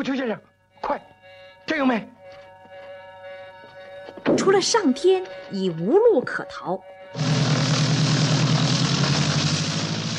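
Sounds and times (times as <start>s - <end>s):
speech: 0.0s - 1.1s, 1.7s - 2.2s, 4.3s - 7.3s
aircraft engine starting: 7.2s - 10.1s.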